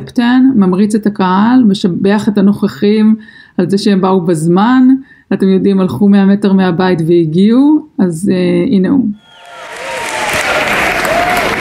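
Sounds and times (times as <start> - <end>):
speech: 0.0 - 9.2
crowd applauding at a precinct caucus: 9.2 - 11.5.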